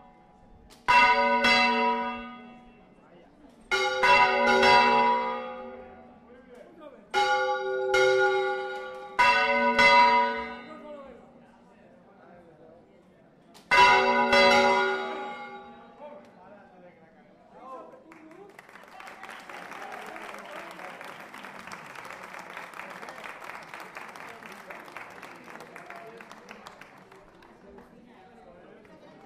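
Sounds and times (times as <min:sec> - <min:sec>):
bell: 0:00.9 - 0:02.8, 0:03.7 - 0:06.1, 0:07.2 - 0:10.9, 0:13.7 - 0:16.0.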